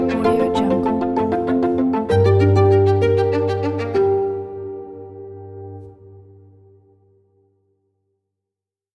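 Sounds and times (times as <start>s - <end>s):
violin: 0.0s - 5.4s.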